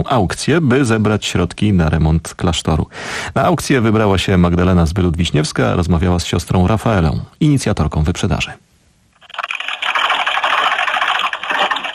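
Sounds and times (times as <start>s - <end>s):
speech: 0.0s - 8.7s
pre-war Singer sewing machine running: 9.2s - 11.9s.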